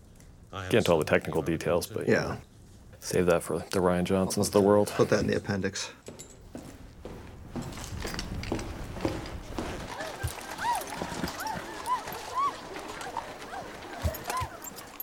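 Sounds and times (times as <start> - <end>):
speech: 0.5 - 6.2
horse hooves clopping: 6.0 - 15.0.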